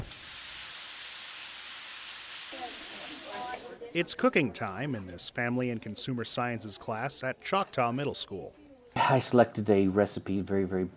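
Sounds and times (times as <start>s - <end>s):
stove hiss in a middle school family and consumer sciences class: 0.0s - 3.8s
speech: 2.5s - 10.9s.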